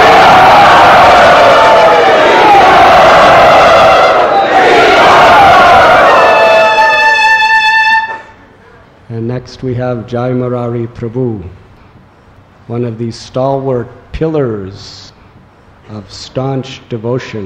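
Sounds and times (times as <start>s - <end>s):
audience at a Krishna devotional gathering cheering a welcome: 0.0s - 8.3s
speech: 9.5s - 11.6s, 12.7s - 15.1s, 15.9s - 17.4s.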